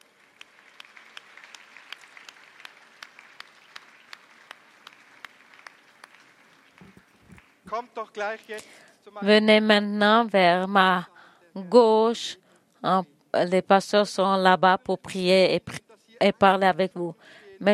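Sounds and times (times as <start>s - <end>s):
audience applauding: 0.0s - 7.9s
speech: 7.7s - 17.7s.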